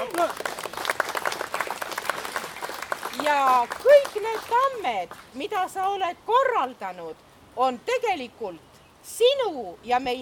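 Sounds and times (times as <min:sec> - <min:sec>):
speech: 0:00.0 - 0:00.6, 0:03.2 - 0:10.2
audience applause: 0:00.0 - 0:04.7.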